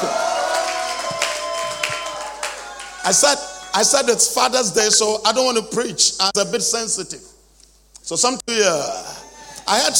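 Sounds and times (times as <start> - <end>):
audience clapping hands: 0.0 - 3.8
speech: 3.1 - 7.3, 8.1 - 9.9.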